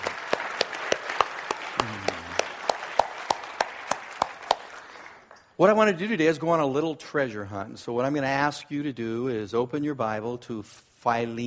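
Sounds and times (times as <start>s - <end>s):
audience applauding: 0.0s - 5.5s
person calling out: 1.8s - 2.4s
speech: 5.6s - 11.4s.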